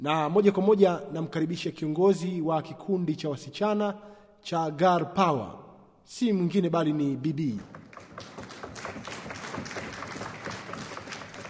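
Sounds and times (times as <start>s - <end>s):
speech: 0.0s - 8.5s
guests clapping at a school celebration of girls' achievements: 7.5s - 11.4s.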